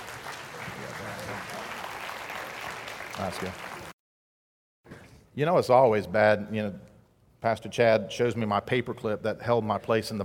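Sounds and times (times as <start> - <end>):
crowd applause for a church choir: 0.0 - 4.0
speech: 3.2 - 3.7, 5.4 - 10.2.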